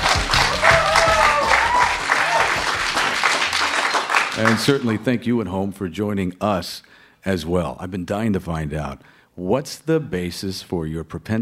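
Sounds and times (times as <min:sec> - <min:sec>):
live studio audience applauding at a Hollywood album premiere: 0:00.0 - 0:05.0
speech: 0:04.4 - 0:11.4.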